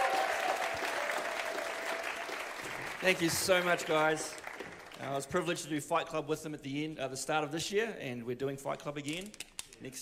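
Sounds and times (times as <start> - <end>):
audience clapping: 0.0 - 5.5
speech: 3.0 - 4.4, 5.0 - 10.0.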